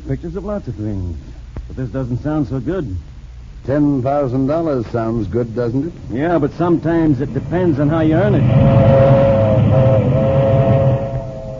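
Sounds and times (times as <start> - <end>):
speech: 0.1 - 10.3
milk train rumbling past: 6.2 - 11.5
faint sustained metallic tone: 6.4 - 11.5.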